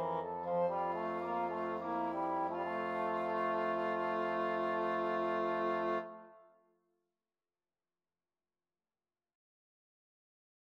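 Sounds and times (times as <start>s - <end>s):
woodwind fugue in F minor: 0.0s - 6.5s.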